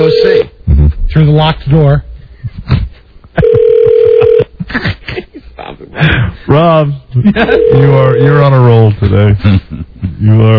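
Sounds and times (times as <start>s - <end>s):
telephone ringing: 0.0s - 0.4s, 3.4s - 4.5s, 7.4s - 8.5s
speech: 1.2s - 2.1s, 4.7s - 5.0s, 6.0s - 10.5s.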